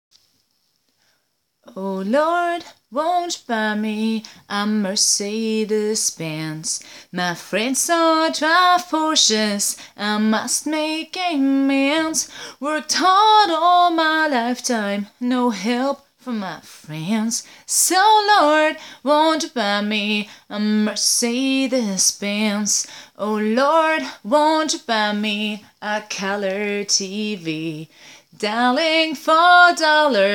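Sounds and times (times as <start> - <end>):
woman singing solo voice: 1.6 - 30.3.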